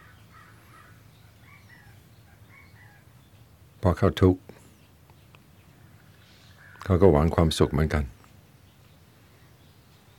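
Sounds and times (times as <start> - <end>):
crows cawing: 0.0 - 3.2, 5.7 - 6.9
speech: 3.8 - 4.5, 6.9 - 8.2.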